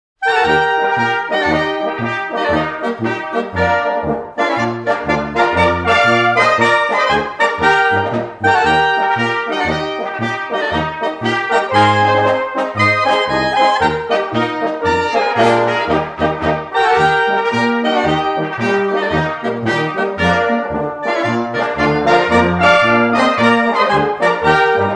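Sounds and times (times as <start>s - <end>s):
village brass band polka: 0.2s - 24.9s.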